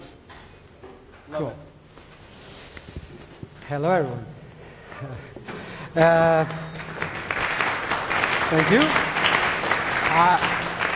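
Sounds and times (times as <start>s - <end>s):
speech: 1.3s - 1.7s, 3.7s - 4.4s, 5.0s - 5.4s, 6.0s - 6.7s, 8.5s - 9.1s, 10.2s - 10.5s
audience clapping: 6.0s - 10.9s.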